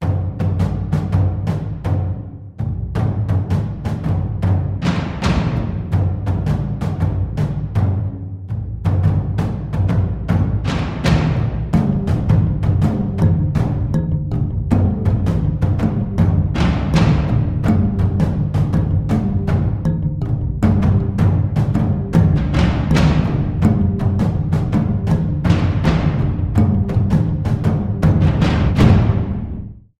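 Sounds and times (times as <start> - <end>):
tribal call drum banging: 0.0 - 29.9.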